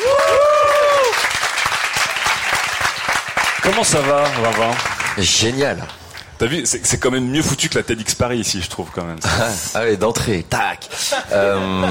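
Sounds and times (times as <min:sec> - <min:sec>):
audience applause: 0:00.0 - 0:05.9
speech: 0:03.7 - 0:11.8
laughter: 0:10.9 - 0:11.8.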